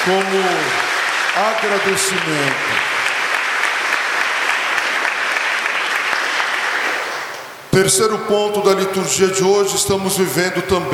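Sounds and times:
speech: 0:00.0 - 0:00.8, 0:01.4 - 0:02.9, 0:07.8 - 0:10.9
audience applause: 0:00.0 - 0:07.7.

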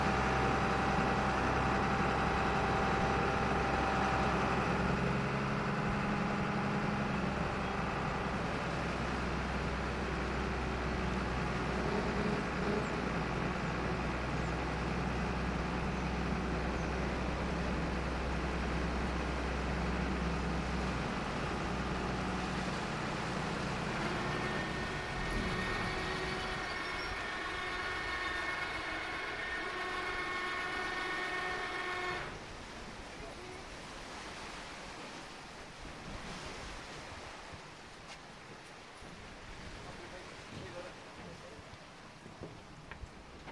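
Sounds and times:
Burgh Island sea tractor engine drone with whining tones: 0:00.0 - 0:33.6.

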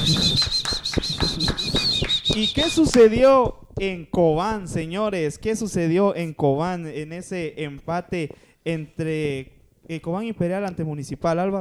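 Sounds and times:
constant high-pitched whistling tone: 0:00.0 - 0:03.2
hands clapping: 0:00.0 - 0:03.6
speech: 0:02.4 - 0:11.5.

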